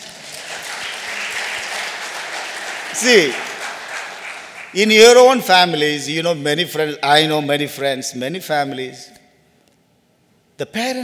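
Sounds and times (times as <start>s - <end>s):
people clapping hands: 0.0s - 5.4s
speech: 3.0s - 3.5s, 4.7s - 9.2s, 10.6s - 11.0s.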